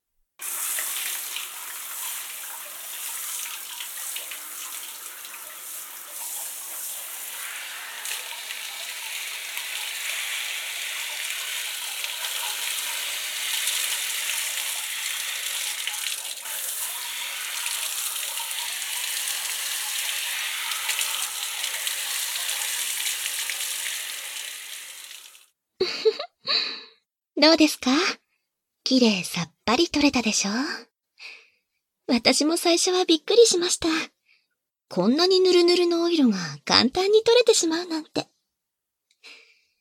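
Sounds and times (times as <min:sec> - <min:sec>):
shower water running, rinsing: 0:00.4 - 0:25.5
speech: 0:27.4 - 0:28.2, 0:28.9 - 0:30.9, 0:32.1 - 0:34.2, 0:34.9 - 0:38.3.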